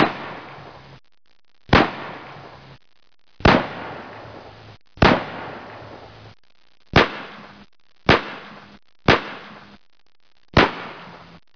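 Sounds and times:
gunshots: 0.0s - 0.8s, 1.7s - 2.6s, 3.4s - 6.2s, 6.9s - 9.8s, 10.5s - 11.4s.

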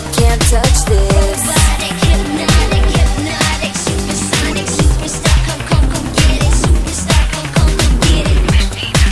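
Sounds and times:
ringtone: 0.2s - 9.0s.

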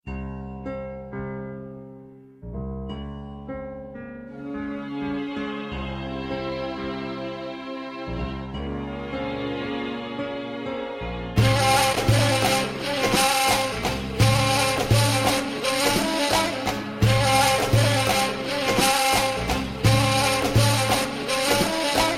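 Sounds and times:
Tunisian music: 0.1s - 22.1s.

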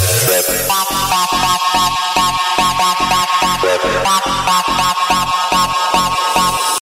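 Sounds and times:
breakbeat drums: 0.0s - 6.7s.

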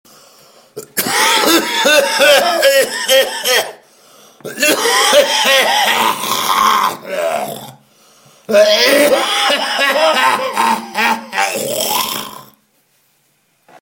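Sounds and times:
person coughing: 0.8s - 3.8s, 4.4s - 6.7s, 8.5s - 12.2s.

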